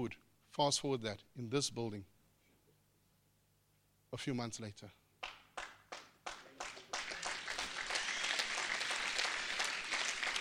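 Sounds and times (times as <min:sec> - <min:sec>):
speech: 0:00.0 - 0:02.1, 0:04.1 - 0:05.0
audience applause: 0:05.6 - 0:10.3.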